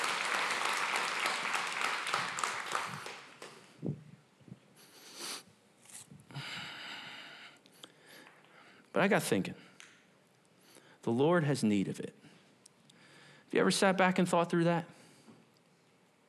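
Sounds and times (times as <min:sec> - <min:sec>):
audience clapping: 0:00.0 - 0:03.8
speech: 0:09.0 - 0:09.7, 0:11.0 - 0:12.2, 0:13.6 - 0:15.0.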